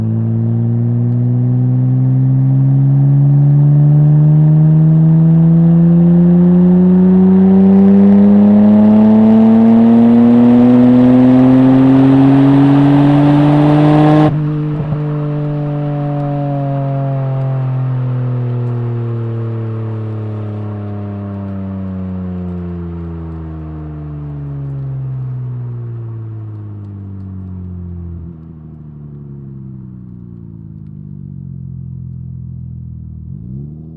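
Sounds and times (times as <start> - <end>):
Nissan R33 Skyline exhaust on ramps during drive: 0.1 - 20.6.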